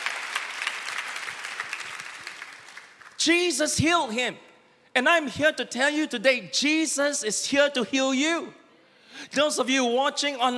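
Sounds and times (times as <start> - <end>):
audience clapping: 0.0 - 3.3
speech: 3.2 - 10.5.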